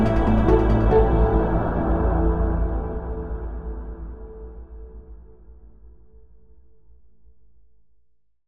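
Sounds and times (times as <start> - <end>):
ambient music: 0.0 - 6.0.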